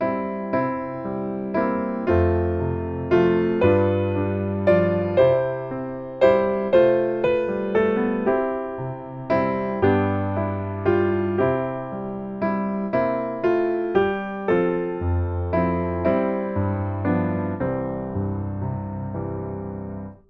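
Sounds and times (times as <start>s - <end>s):
piano: 0.0s - 20.2s.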